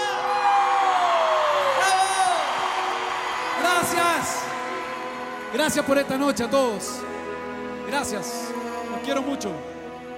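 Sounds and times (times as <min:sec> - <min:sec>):
audience applause: 0:00.0 - 0:06.9
speech: 0:05.5 - 0:07.3, 0:07.9 - 0:09.8.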